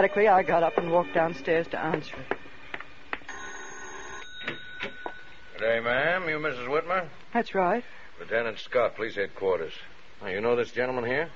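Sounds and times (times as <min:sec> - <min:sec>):
electric doorbell ringing: 0:00.0 - 0:02.1, 0:03.3 - 0:05.6
speech: 0:00.0 - 0:02.4, 0:05.6 - 0:11.3.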